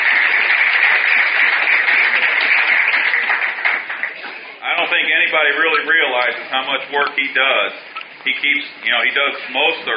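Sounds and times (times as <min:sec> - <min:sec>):
audience applause: 0:00.0 - 0:04.6
speech: 0:04.9 - 0:09.9.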